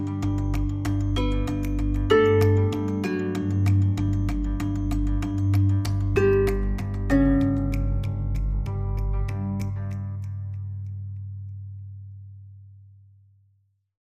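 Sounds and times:
marimba: 0.0s - 9.8s.

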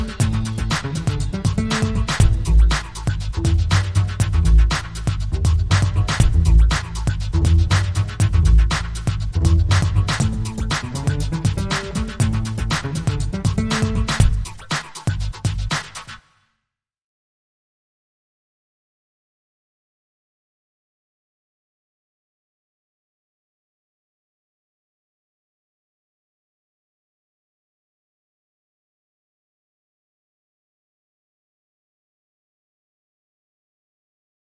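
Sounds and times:
swinging bass line: 0.0s - 15.8s.

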